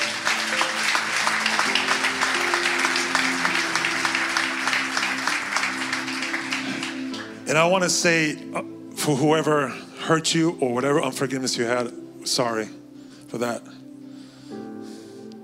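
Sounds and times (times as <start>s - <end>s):
audience applause: 0.0s - 7.5s
speech: 7.5s - 13.8s.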